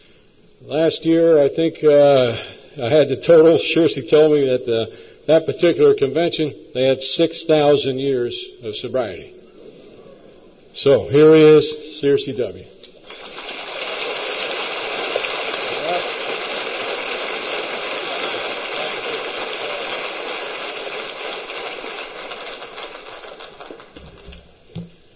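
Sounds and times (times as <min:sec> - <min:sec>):
speech: 0:00.6 - 0:09.4, 0:10.8 - 0:12.8
audience applause: 0:13.0 - 0:24.5.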